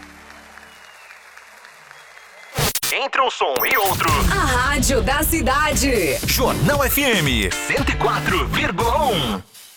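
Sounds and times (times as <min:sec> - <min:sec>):
crowd applause: 0:00.0 - 0:02.6
speech: 0:03.0 - 0:09.5.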